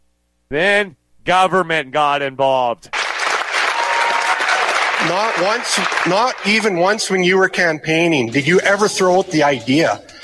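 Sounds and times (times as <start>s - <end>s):
speech: 0.5s - 3.0s, 5.0s - 10.1s
audience clapping: 2.9s - 7.1s.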